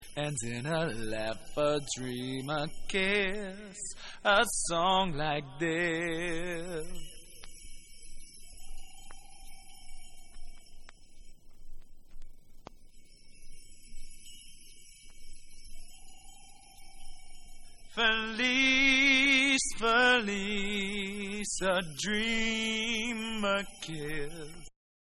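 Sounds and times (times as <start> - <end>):
UK remix a cappella vocals: 0.0 - 7.3, 17.9 - 24.7.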